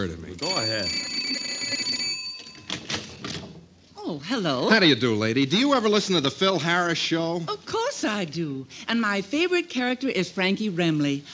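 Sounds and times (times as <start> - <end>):
speech: 0.0 - 1.9, 4.1 - 11.3
doorbell ringing: 0.4 - 2.9.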